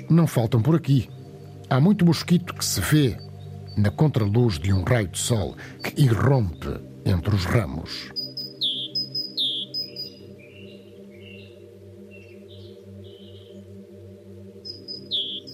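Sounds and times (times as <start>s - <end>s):
tit chirping among branches: 0.0s - 13.8s, 14.5s - 15.5s
speech: 0.1s - 3.2s, 3.8s - 8.2s.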